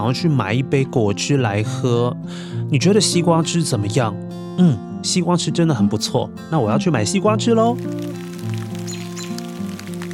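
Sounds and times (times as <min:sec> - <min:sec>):
speech: 0:00.0 - 0:08.3
rain pattering: 0:07.6 - 0:10.1.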